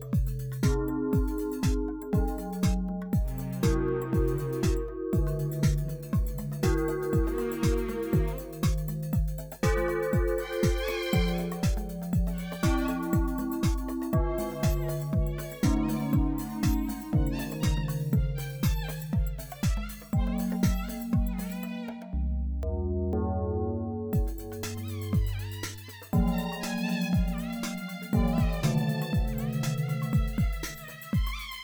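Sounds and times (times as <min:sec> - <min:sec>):
dark bells: 0:00.2 - 0:21.9, 0:22.7 - 0:31.5.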